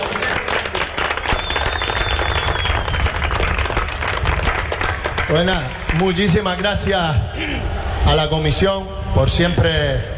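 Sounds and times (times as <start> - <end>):
audience applause: 0.0 - 7.0
speech: 5.3 - 10.1.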